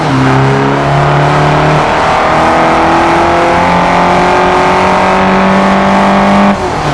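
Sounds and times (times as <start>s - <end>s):
vehicles: 0.0s - 6.9s.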